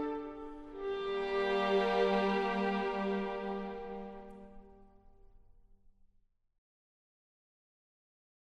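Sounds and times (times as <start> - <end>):
baroque orchestral country dance in G major: 0.0 - 4.4.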